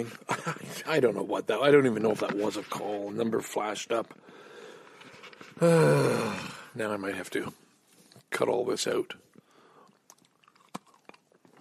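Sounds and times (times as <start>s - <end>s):
speech: 0.0s - 4.5s, 5.5s - 7.6s, 8.3s - 9.3s
person chewing a cookie: 9.3s - 11.6s.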